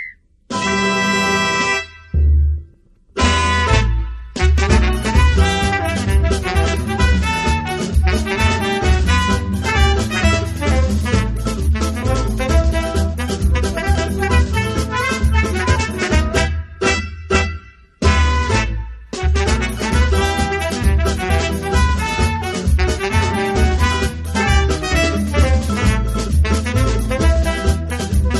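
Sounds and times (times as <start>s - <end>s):
frevo de bloco music: 0.5s - 28.3s.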